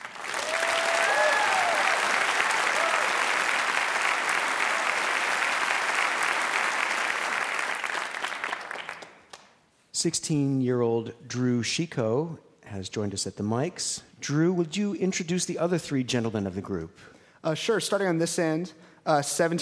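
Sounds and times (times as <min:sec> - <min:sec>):
audience applauding to welcome a hometown guitar quartet from Chattanooga: 0:00.0 - 0:09.5
speech: 0:10.0 - 0:19.5.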